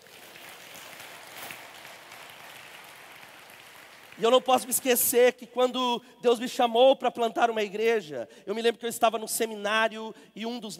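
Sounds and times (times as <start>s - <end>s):
audience applause: 0.0s - 4.8s
speech: 4.2s - 10.7s.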